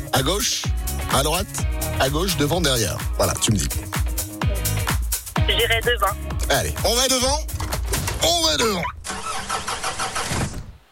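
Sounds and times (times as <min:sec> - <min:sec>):
speech: 0:00.2 - 0:04.0, 0:05.5 - 0:07.5, 0:08.2 - 0:09.0
car engine struggling to start: 0:07.5 - 0:10.4.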